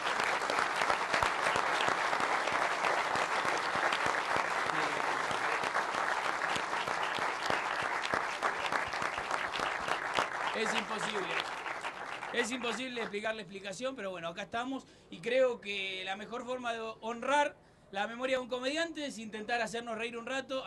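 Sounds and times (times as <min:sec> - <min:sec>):
audience applause: 0:00.0 - 0:13.2
speech: 0:12.4 - 0:20.6.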